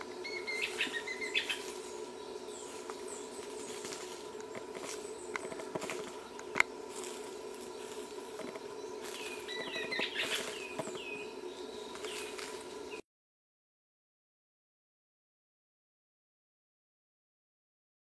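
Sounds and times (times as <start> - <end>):
fruxu baiano bird singing: 0.0 - 13.0.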